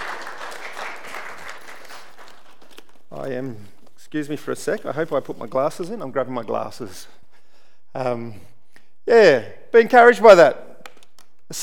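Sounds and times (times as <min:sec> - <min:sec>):
applause: 0:00.0 - 0:03.0
speech: 0:03.2 - 0:07.2, 0:07.9 - 0:08.5, 0:09.1 - 0:10.7, 0:11.5 - 0:11.6.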